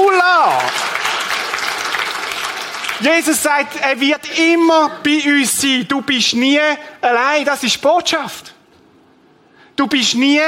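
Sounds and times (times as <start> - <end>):
audience clapping: 0.0 - 3.8
speech: 3.0 - 8.5, 9.8 - 10.4.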